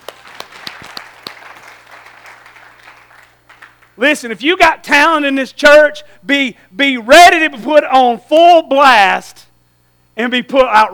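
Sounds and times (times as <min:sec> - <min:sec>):
audience applause: 0:00.0 - 0:04.0
speech: 0:04.0 - 0:09.4, 0:10.2 - 0:10.9.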